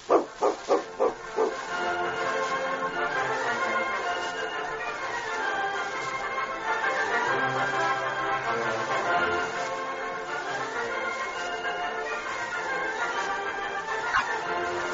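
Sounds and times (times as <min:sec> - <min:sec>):
dog barking: 0:00.0 - 0:01.6
steady hissing noise: 0:00.0 - 0:14.9.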